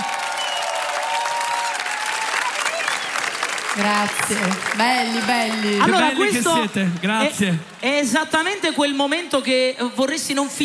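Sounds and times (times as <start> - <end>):
audience applause: 0.0 - 7.9
speech: 3.8 - 10.6.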